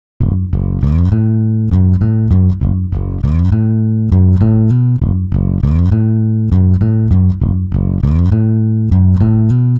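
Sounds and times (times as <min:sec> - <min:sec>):
pitch-shifted bass: 0:00.2 - 0:09.7.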